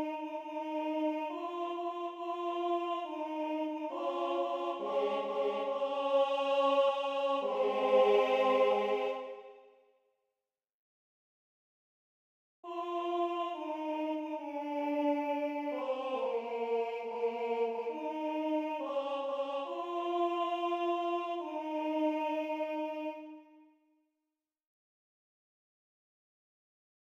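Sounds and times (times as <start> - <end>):
tenor singing: 0.0 - 9.7, 12.7 - 23.4.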